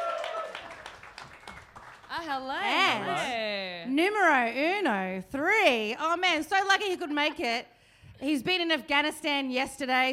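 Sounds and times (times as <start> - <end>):
audience clapping: 0.0 - 3.0
speech: 2.2 - 10.1.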